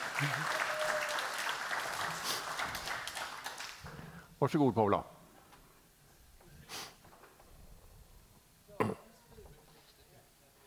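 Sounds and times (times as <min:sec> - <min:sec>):
audience applause: 0:00.0 - 0:04.2
speech: 0:00.2 - 0:00.6, 0:04.4 - 0:05.1.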